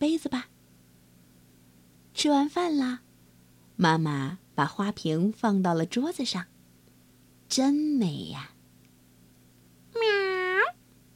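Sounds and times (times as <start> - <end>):
speech: 0.0 - 0.5, 2.2 - 3.1, 3.8 - 6.5, 7.5 - 8.5
faint low hum: 0.0 - 11.1
cat meowing: 10.0 - 10.8.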